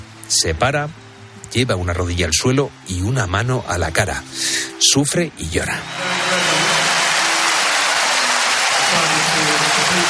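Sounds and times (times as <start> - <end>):
speech: 0.3 - 6.5
stadium spectators at Montjuic cheering and applauding: 5.6 - 10.0.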